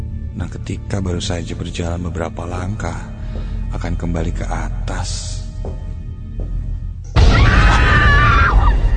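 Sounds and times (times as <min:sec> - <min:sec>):
speech: 0:00.4 - 0:06.5
woman screaming inside a dark toilet: 0:07.2 - 0:08.8.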